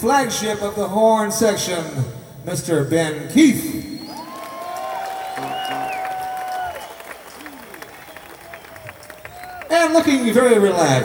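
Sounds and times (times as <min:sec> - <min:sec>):
speech: 0:00.0 - 0:03.9, 0:09.9 - 0:11.0
crowd whistles and shouts: 0:03.7 - 0:10.4
concert crowd applauding: 0:04.0 - 0:11.0.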